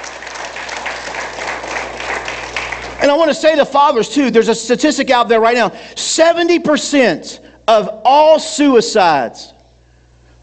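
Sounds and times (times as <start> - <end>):
audience clapping hands: 0.0 - 3.4
speech: 3.0 - 9.6.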